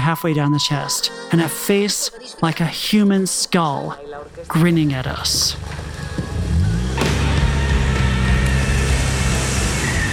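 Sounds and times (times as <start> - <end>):
speech: 0.1 - 5.8
tires spinning and churning loose dirt and gravel: 4.3 - 10.1
car engine revving while reversing fast: 5.3 - 10.1.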